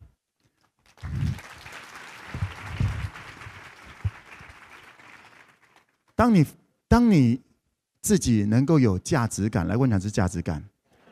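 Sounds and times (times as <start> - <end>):
audience applause: 0.8 - 6.0
speech: 6.2 - 7.4, 8.0 - 10.7.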